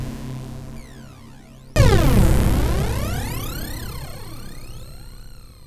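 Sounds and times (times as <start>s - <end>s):
synth sound effect: 1.8s - 5.4s.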